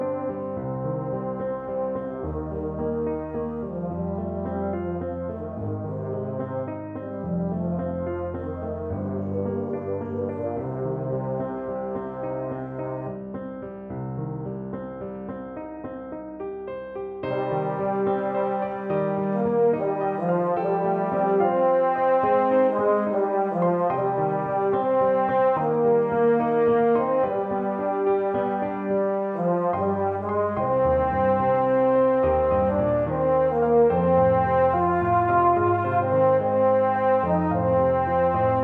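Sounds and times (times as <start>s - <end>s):
euphonium melody: 0.0s - 13.2s, 17.2s - 38.6s.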